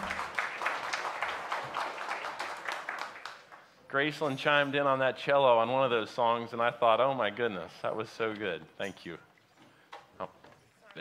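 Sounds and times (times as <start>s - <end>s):
audience applause at a church worship service: 0.0s - 3.8s
speech: 3.9s - 9.3s.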